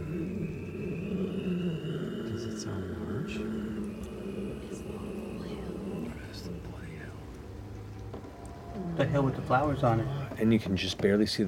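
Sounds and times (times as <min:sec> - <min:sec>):
low, long drawn-out breathing: 0:00.0 - 0:07.8
speech: 0:09.0 - 0:11.4.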